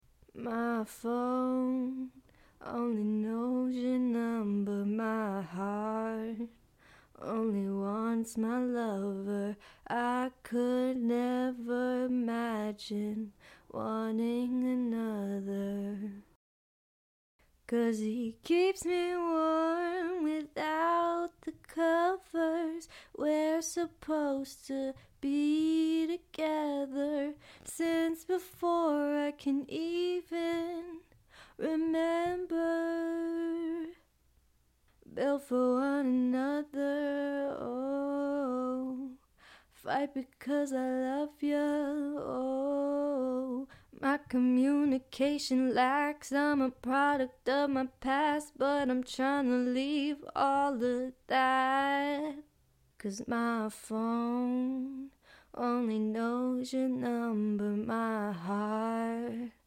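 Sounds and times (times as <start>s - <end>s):
a cappella pop vocals in B-flat minor at 105 BPM: 0.2s - 16.4s, 17.6s - 34.1s, 34.9s - 59.6s.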